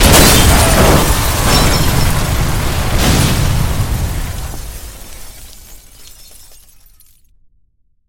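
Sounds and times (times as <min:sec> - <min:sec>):
prolonged catastrophic crash with many cars: 0:00.0 - 0:07.1.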